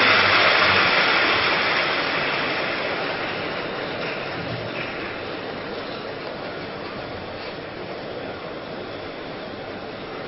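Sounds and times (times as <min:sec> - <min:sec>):
audience clapping: 0:00.0 - 0:06.5.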